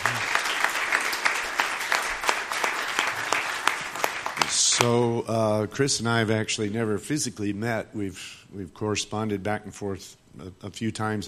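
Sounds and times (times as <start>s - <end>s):
room full of people applauding: 0.0s - 5.1s
speech: 4.8s - 11.2s.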